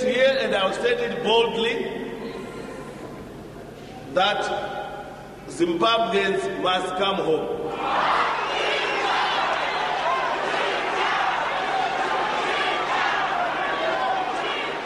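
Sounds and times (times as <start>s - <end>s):
speech: 0.6s - 2.0s, 4.2s - 4.8s, 5.5s - 8.4s
crowd jeering and chanting: 7.7s - 14.8s.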